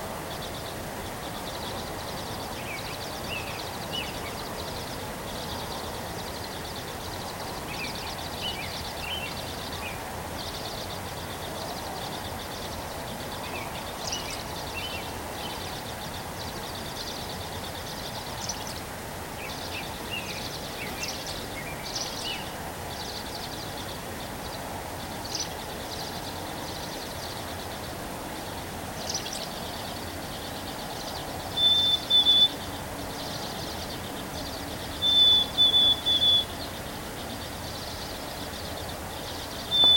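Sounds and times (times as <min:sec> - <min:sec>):
background hiss: 0:00.0 - 0:39.9
bird song: 0:00.2 - 0:39.9.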